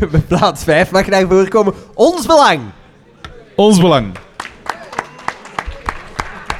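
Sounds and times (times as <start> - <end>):
speech: 0.0 - 2.8, 3.6 - 4.2
audience applause: 4.1 - 6.5.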